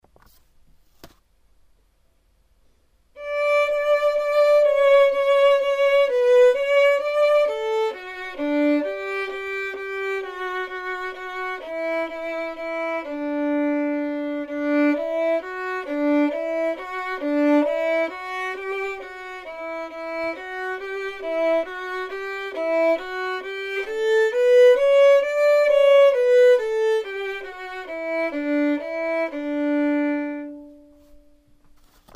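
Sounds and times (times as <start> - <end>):
violin performance: 3.2 - 31.4.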